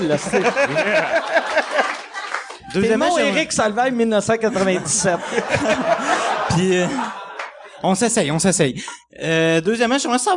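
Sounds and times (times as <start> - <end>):
speech: 0.0 - 2.0, 2.7 - 7.2, 7.8 - 10.3
audience applause: 0.0 - 3.3, 5.6 - 7.7
laughter: 0.0 - 8.9.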